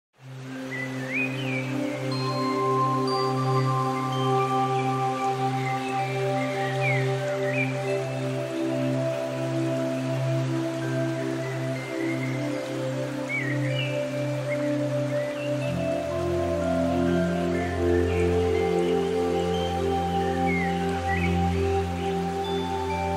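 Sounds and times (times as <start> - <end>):
birds: 0.2 - 23.1
music: 0.2 - 23.1
water: 0.2 - 23.1.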